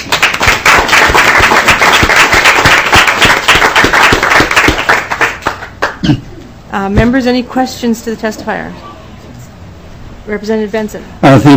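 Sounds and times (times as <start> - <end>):
group applauding welcoming students: 0.0 - 6.0
speech: 6.8 - 8.9, 10.3 - 11.5.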